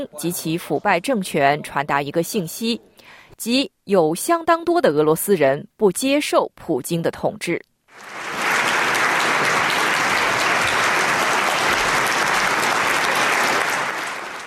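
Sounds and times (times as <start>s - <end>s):
speech: 0.0s - 8.3s
large crowd applauding: 7.9s - 14.4s.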